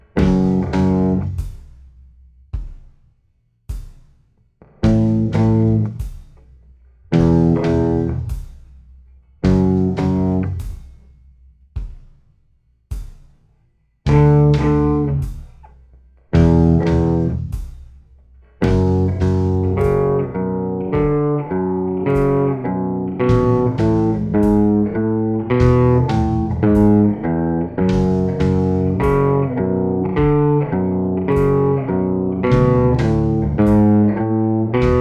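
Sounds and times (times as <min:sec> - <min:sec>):
slow guitar riff: 0:00.0 - 0:01.3, 0:04.8 - 0:06.0, 0:07.1 - 0:08.3, 0:09.4 - 0:10.6, 0:14.1 - 0:15.3, 0:16.4 - 0:17.5, 0:18.6 - 0:34.9.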